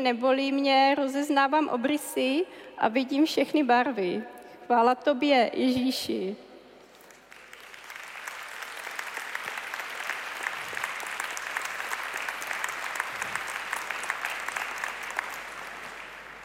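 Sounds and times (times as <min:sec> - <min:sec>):
speech: 0:00.0 - 0:06.4
audience applause: 0:07.0 - 0:16.4.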